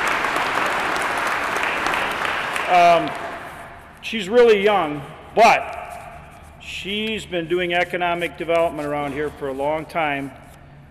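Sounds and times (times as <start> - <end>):
audience applause: 0.0 - 3.4
speech: 2.7 - 3.2, 4.0 - 5.8, 6.6 - 10.4.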